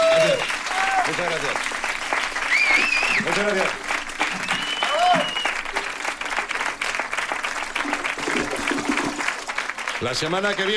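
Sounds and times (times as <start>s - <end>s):
audience applause: 0.0s - 10.7s
speech: 1.1s - 1.8s, 3.3s - 4.4s, 10.0s - 10.7s.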